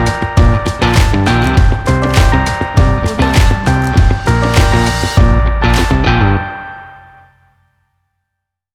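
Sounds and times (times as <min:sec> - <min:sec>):
funk music: 0:00.0 - 0:06.8.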